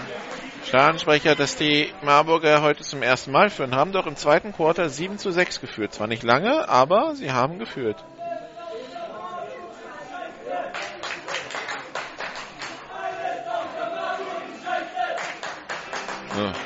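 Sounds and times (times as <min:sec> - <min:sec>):
stadium crowd applause: 0:00.0 - 0:02.0, 0:10.0 - 0:16.6
crowd chatter and shouting: 0:00.0 - 0:16.6
speech: 0:00.6 - 0:08.1, 0:16.4 - 0:16.6.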